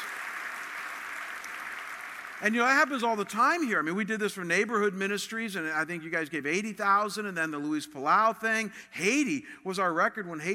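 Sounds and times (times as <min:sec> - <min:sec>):
audience applause: 0:00.0 - 0:03.2
speech: 0:02.4 - 0:10.5.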